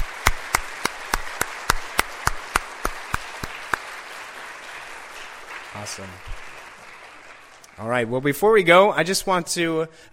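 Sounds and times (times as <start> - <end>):
round of applause: 0.0 - 8.4
speech: 5.8 - 6.5, 7.8 - 10.1.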